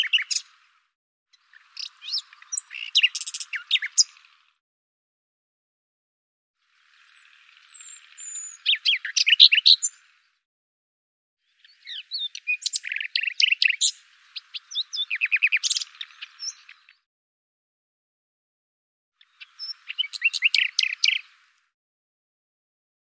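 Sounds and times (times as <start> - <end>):
bird bright chirps: 0.0 - 0.5, 1.4 - 4.4, 7.0 - 10.0, 11.5 - 17.1, 19.2 - 21.4.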